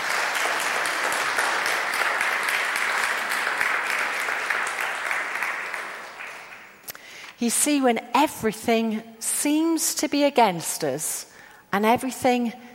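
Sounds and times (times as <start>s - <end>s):
crowd applause: 0.0s - 6.8s
speech: 7.4s - 12.6s.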